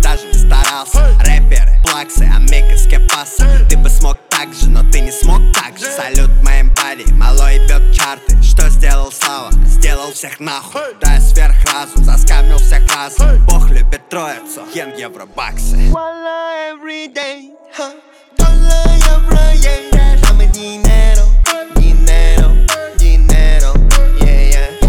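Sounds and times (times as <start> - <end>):
31 to 35 Hz low bass tone: 0.0 - 5.6, 6.2 - 10.0, 11.0 - 14.0, 15.4 - 16.0, 18.4 - 24.8.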